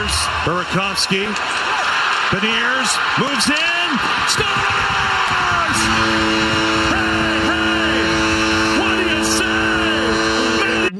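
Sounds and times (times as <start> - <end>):
speech: 0.4 - 1.7, 2.3 - 7.0
foghorn blast: 5.0 - 10.9.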